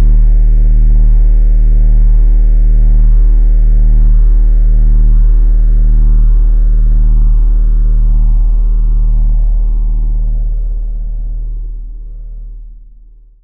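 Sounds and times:
dark distorted bass drone: 0.0 - 13.4
static noise: 3.2 - 12.8.

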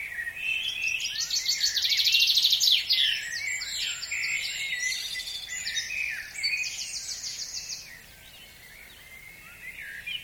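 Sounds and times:
dawn chorus birds: 0.0 - 10.2.

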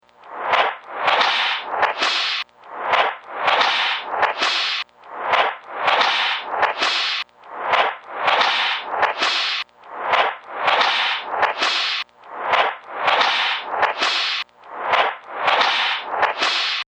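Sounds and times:
scary torture machine soundscape: 0.3 - 16.8.

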